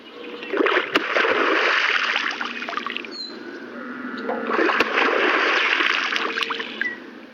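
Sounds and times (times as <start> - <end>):
beaver slapping its tail on water: 0.5 - 3.1, 4.5 - 6.9.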